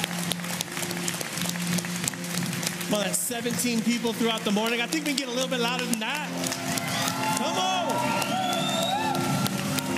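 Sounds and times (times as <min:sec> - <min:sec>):
crowd clapping: 0:00.0 - 0:09.9
speech: 0:02.9 - 0:06.7, 0:07.4 - 0:08.3.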